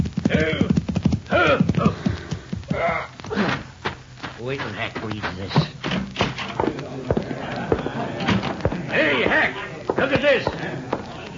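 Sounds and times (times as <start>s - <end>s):
horse clip-clopping and reined to a stop: 0.0s - 11.3s
laughter: 6.6s - 11.3s.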